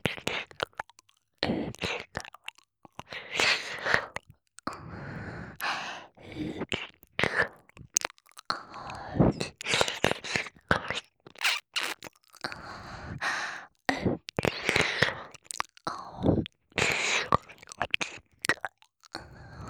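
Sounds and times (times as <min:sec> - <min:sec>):
ear licking ASMR: 0:00.2 - 0:04.7, 0:05.6 - 0:19.4
hair sniffing ASMR: 0:11.4 - 0:12.0.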